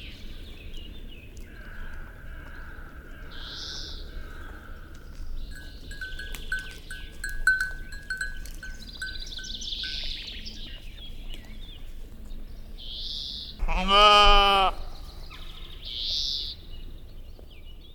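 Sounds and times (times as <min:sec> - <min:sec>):
high bird song: 0:00.0 - 0:13.7, 0:14.8 - 0:17.9
faint tinkling tones: 0:05.4 - 0:10.6
sheep bleating: 0:13.6 - 0:15.0.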